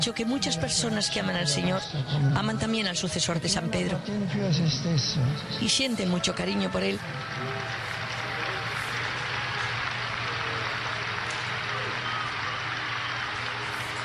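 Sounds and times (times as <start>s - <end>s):
speech: 0.0s - 7.6s
applause: 7.0s - 14.0s.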